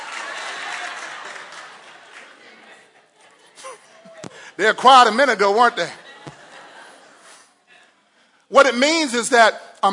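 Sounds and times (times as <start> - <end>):
women clapping: 0.0 - 2.7
laughter: 0.0 - 8.1
speech: 4.6 - 6.0, 8.7 - 9.9.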